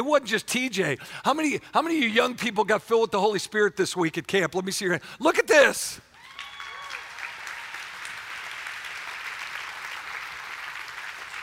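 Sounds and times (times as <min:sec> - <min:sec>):
speech: 0:00.0 - 0:06.1
audience clapping: 0:06.2 - 0:11.4.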